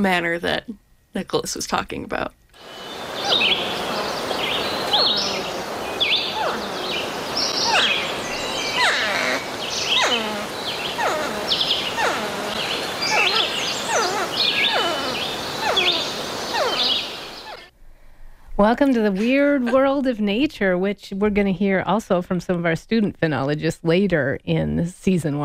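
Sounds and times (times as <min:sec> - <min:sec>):
speech: 0:00.0 - 0:03.5, 0:18.6 - 0:25.4
porcupines vocalizing with squeaky whines and cries: 0:02.6 - 0:17.7.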